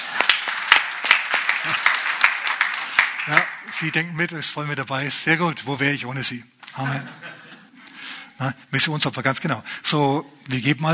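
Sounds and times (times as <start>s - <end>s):
audience clapping: 0.0s - 4.0s
speech: 3.2s - 7.4s, 8.4s - 10.9s
laughter: 6.8s - 7.9s.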